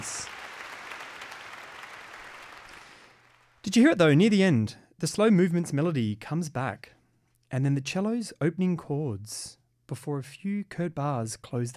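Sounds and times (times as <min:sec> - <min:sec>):
concert audience applause: 0:00.0 - 0:03.6
speech: 0:03.7 - 0:11.7.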